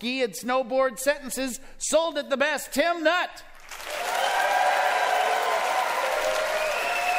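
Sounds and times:
speech: 0.0 - 4.3
crowd applause: 3.6 - 7.1.

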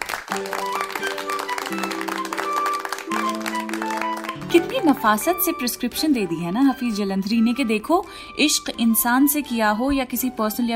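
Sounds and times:
crowd clapping: 0.0 - 5.6
instrumental music playing held tones: 0.0 - 10.7
speech: 0.3 - 0.6, 4.5 - 10.7.

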